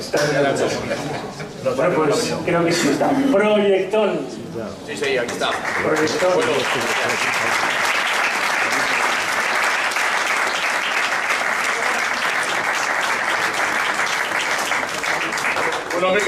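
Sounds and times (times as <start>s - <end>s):
speech: 0.1s - 7.7s
audience applause: 5.0s - 16.2s.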